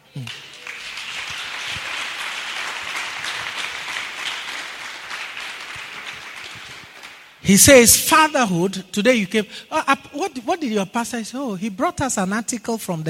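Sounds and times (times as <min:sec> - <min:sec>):
crowd applauding: 0:00.0 - 0:07.4
speech: 0:00.2 - 0:00.4, 0:07.5 - 0:13.0.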